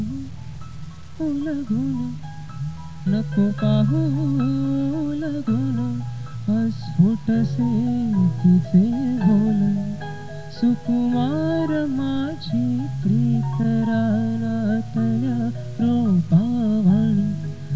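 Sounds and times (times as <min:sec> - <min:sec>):
music: 0:00.0 - 0:17.7.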